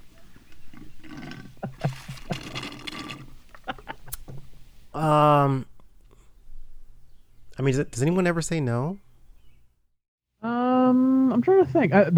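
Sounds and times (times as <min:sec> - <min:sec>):
person sipping a drink: 0:00.2 - 0:04.3
laughter: 0:00.7 - 0:04.5, 0:10.9 - 0:12.1
speech: 0:05.0 - 0:05.7, 0:07.6 - 0:09.0, 0:11.4 - 0:12.1.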